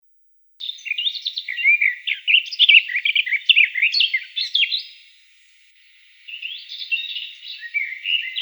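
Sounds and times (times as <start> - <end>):
Eurasian blackcap song: 0.6 - 8.4.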